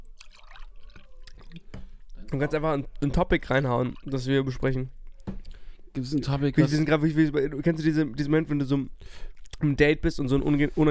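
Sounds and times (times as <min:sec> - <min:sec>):
wine being poured into a glass: 0:00.0 - 0:05.6
speech: 0:02.3 - 0:05.0, 0:06.0 - 0:10.8.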